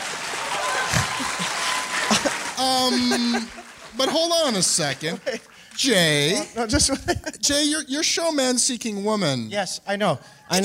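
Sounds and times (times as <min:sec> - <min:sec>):
audience applause: 0:00.0 - 0:06.3
laughter: 0:00.6 - 0:05.7, 0:06.3 - 0:07.6
speech: 0:02.6 - 0:10.6.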